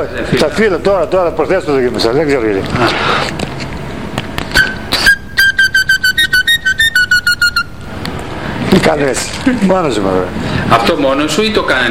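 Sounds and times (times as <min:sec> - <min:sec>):
speech: 0:00.0 - 0:03.4, 0:08.7 - 0:11.8
whistled bird imitation: 0:04.5 - 0:07.7.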